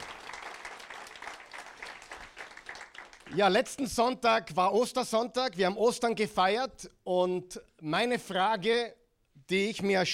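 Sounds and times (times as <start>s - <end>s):
crowd applauding: 0.0s - 3.6s
speech: 3.3s - 10.1s.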